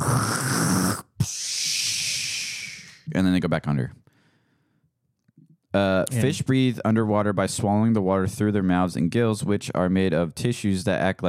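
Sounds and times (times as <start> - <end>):
person imitating a whale exhaling through its blowhole: 0.0 - 3.1
speech: 3.2 - 4.0, 5.7 - 11.2.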